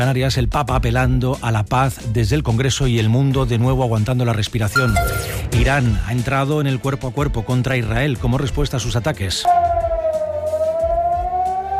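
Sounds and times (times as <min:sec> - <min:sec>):
speech: 0:00.0 - 0:09.6
air raid sirens in a city: 0:09.5 - 0:11.7.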